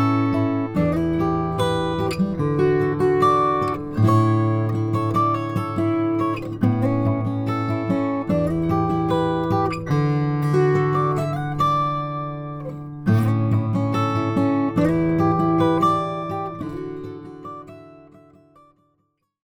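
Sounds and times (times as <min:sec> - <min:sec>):
Olson Indian rosewood acoustic guitar: 0:00.0 - 0:19.0.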